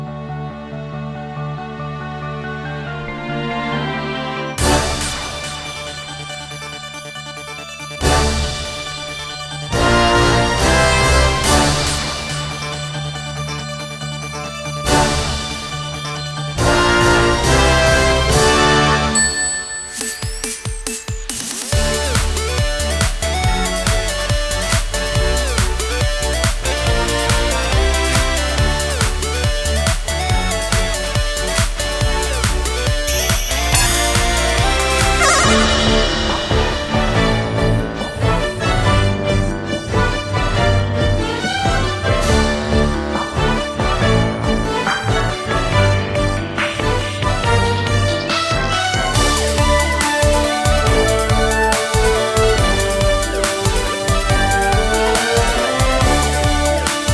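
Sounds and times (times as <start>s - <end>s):
live orchestral music: 0.2s - 20.7s, 21.7s - 57.1s.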